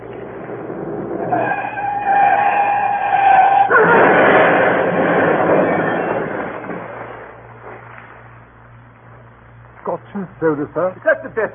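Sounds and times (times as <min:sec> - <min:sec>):
Daimler car crashing: 0:00.2 - 0:07.8
speech: 0:10.4 - 0:11.5.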